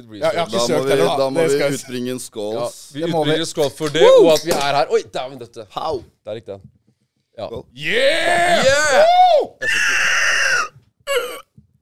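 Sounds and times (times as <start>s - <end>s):
speech: 0.0s - 6.8s, 7.4s - 9.9s
voice imitating a velociraptor screech: 7.9s - 10.8s.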